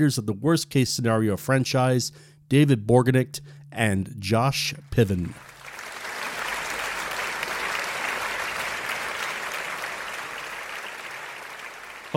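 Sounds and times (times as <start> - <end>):
speech: 0.0 - 5.5
audience applause welcoming guests to a show: 5.3 - 12.1.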